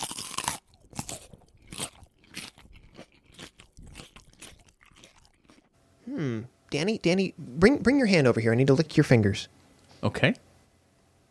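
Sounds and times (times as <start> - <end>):
person biting into and chewing crunchy food: 0.0 - 5.7
speech: 6.1 - 10.4.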